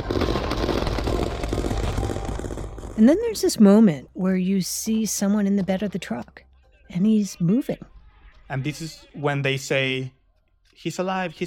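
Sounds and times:
rapid continuous gunfire: 0.0s - 3.5s
speech: 3.0s - 7.9s, 8.5s - 10.2s, 10.8s - 11.4s.

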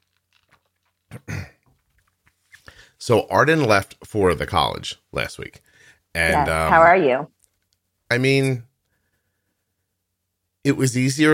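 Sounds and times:
person drinking and swallowing water: 0.0s - 2.4s
speech: 3.0s - 7.4s, 8.1s - 8.7s, 10.6s - 11.3s.

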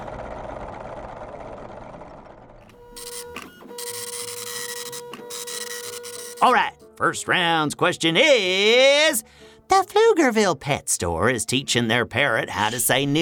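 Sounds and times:
printer printing a page: 2.7s - 6.5s
speech: 6.4s - 13.2s.

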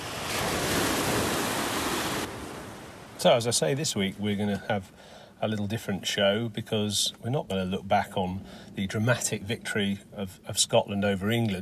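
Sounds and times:
sea waves on the shore: 0.0s - 4.3s
speech: 3.2s - 11.6s.

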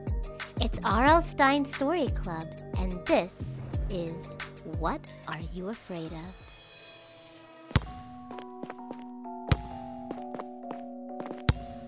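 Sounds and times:
speech: 0.6s - 6.4s
basketball bouncing: 7.7s - 8.3s, 9.5s - 10.2s, 11.2s - 11.8s.

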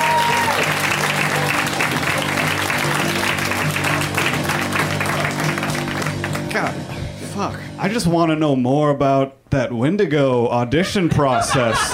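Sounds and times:
comedy show audience applauding a comedian: 0.0s - 6.5s
speech: 7.8s - 11.9s
laughter: 10.8s - 11.9s.

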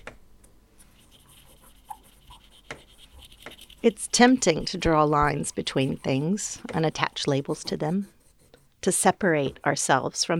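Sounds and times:
pen writing on paper: 1.0s - 8.7s
speech: 3.8s - 8.2s, 8.8s - 10.3s.

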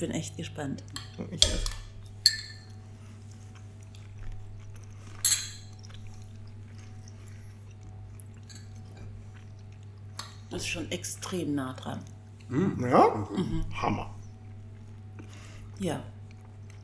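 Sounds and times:
speech: 0.0s - 1.8s, 10.6s - 14.2s, 15.8s - 16.2s
steady low hum: 0.0s - 16.8s
chewing a spoonful of stew: 0.3s - 16.8s
spoon clinking on a bowl: 0.9s - 2.9s, 5.2s - 6.2s, 8.4s - 9.1s.

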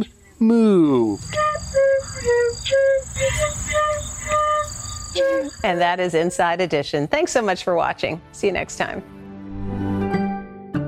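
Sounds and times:
speech: 0.0s - 3.9s, 5.2s - 9.2s
flute playing a children's tune: 1.1s - 6.6s.

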